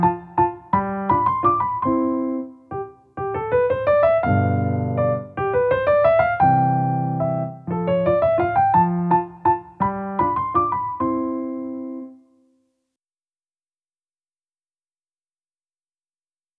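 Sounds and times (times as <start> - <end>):
German dance piano piece: 0.0 - 12.3.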